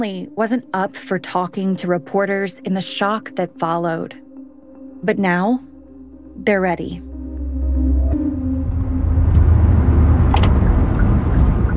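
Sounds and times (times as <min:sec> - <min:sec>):
speech: 0:00.0 - 0:04.2, 0:05.0 - 0:05.7, 0:06.4 - 0:07.1
car driving on a road north to Murrieta: 0:08.0 - 0:11.7.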